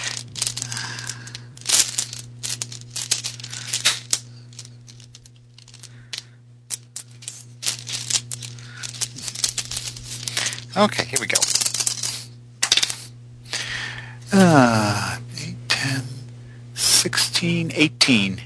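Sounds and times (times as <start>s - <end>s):
many dice rattling as a hand rummages through a bag: 0.0s - 13.1s
low steady hum: 0.0s - 18.4s
speech: 10.8s - 11.6s, 14.5s - 15.1s, 17.4s - 18.4s.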